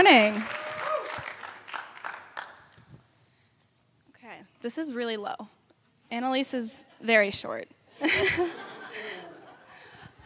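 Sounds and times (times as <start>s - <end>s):
speech: 0.0s - 0.6s, 4.6s - 8.7s
audience applause welcoming a speaker at a church fine arts showcase: 0.3s - 2.6s
laughter: 8.0s - 10.2s.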